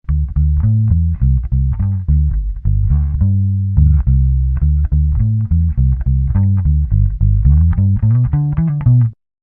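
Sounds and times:
bass: 0.0 - 9.2.

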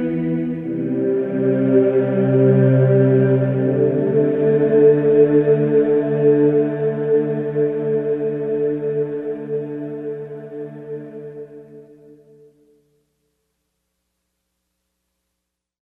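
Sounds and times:
ambience: 0.0 - 12.5.

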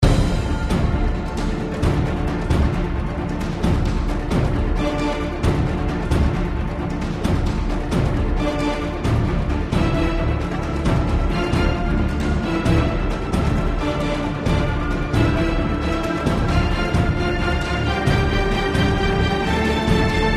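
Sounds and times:
falling music: 0.0 - 20.3.

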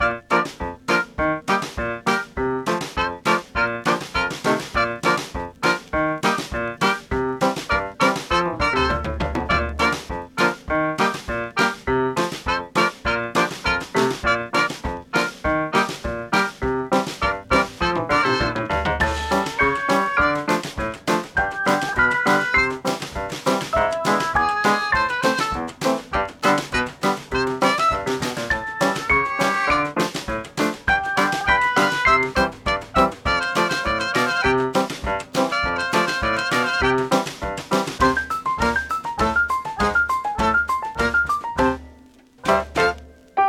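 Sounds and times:
survival music band playing: 0.0 - 43.4.

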